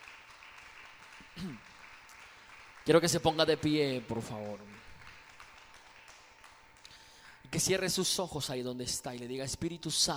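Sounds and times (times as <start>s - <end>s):
audience applause: 0.0s - 7.2s
speech: 1.4s - 1.7s, 2.9s - 4.9s, 7.6s - 10.1s.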